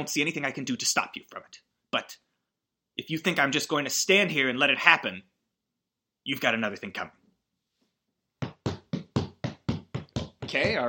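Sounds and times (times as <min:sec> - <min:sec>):
speech: 0:00.0 - 0:02.2, 0:03.1 - 0:05.3, 0:06.2 - 0:07.2, 0:10.5 - 0:10.8
heavy stomping footsteps: 0:08.4 - 0:10.8.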